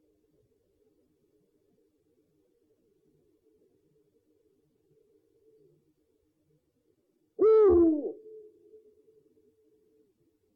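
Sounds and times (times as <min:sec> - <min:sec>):
owl giving a two-part hoot: 0:07.4 - 0:08.5.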